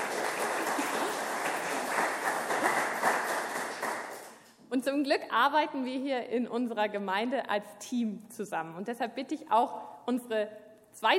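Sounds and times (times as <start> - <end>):
audience applause: 0.0 - 4.4
speech: 4.7 - 11.1.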